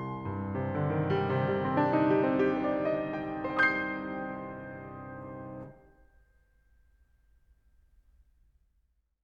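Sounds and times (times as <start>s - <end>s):
piano: 0.0s - 7.0s.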